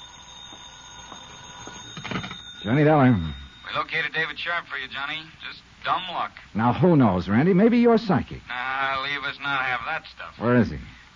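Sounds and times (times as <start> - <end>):
telephone ringing: 0.0 - 5.5
speech: 2.6 - 11.0.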